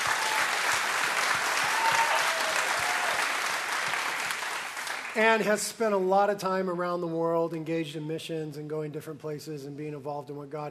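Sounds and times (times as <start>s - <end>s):
audience applause: 0.0s - 5.4s
speech: 5.2s - 10.6s.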